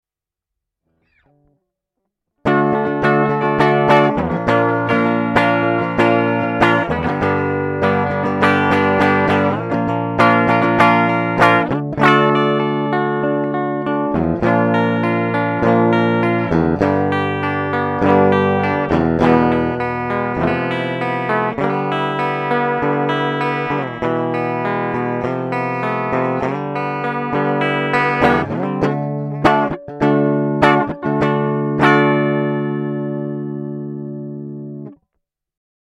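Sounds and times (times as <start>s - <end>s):
Sterling clean electric guitar: 2.4s - 35.0s.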